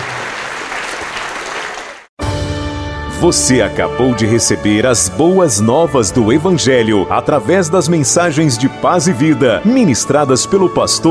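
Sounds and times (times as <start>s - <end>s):
audience applauding: 0.0s - 2.1s
speech: 3.2s - 11.0s.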